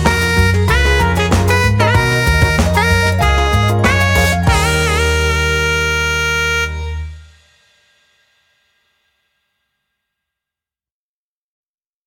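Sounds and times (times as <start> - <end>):
jazz funk music: 0.0 - 7.3.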